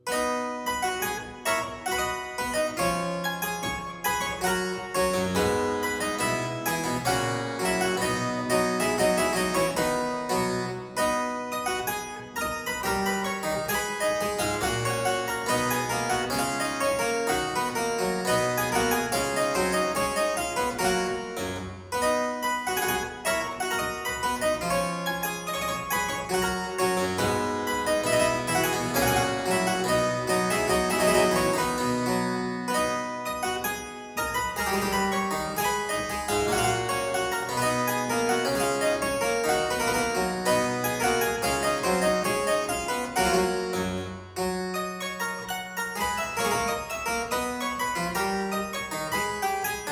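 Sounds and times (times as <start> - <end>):
harpsichord aria variation in C major: 0.0 - 49.9.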